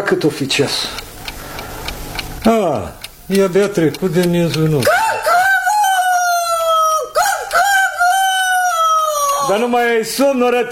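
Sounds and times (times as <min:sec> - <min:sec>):
speech: 0:00.1 - 0:01.1, 0:02.4 - 0:05.0, 0:09.5 - 0:10.6
rooster crowing at midnight: 0:04.8 - 0:09.7.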